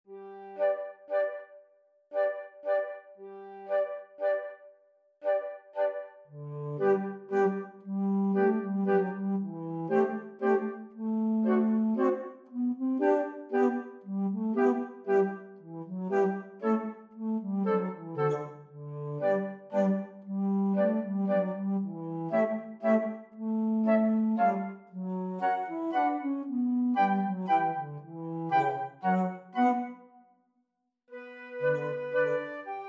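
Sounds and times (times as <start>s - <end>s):
flute: 0.1s - 30.2s, 31.1s - 32.8s.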